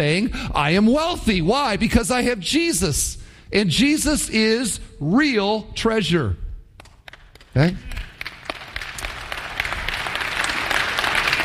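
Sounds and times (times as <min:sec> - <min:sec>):
speech: 0:00.0 - 0:06.4, 0:07.6 - 0:07.9
audience clapping: 0:06.8 - 0:11.4.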